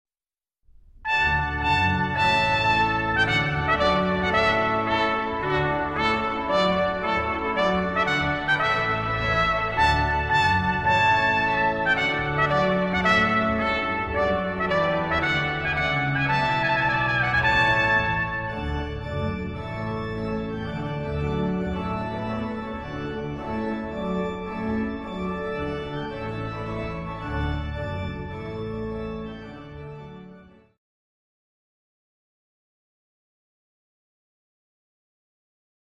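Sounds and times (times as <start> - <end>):
wedding trumpet tune: 1.1 - 28.4.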